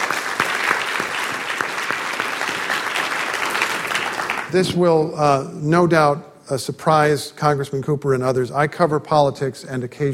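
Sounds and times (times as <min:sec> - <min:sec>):
audience applause: 0:00.0 - 0:04.7
speech: 0:04.5 - 0:10.1.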